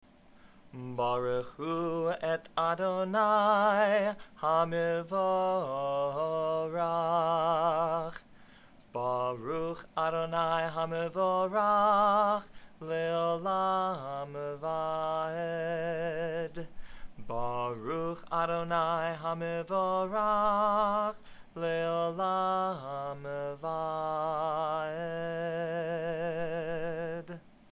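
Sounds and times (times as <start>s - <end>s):
morning prayer chant: 0.7s - 8.3s, 8.9s - 27.6s.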